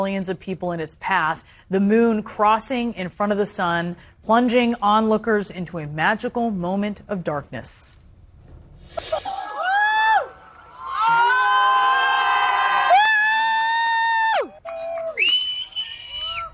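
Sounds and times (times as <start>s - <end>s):
speech: 0.0s - 8.0s
crowd in Spain cheering during totality of a total solar eclipse: 9.1s - 16.5s
whistles: 14.8s - 16.5s.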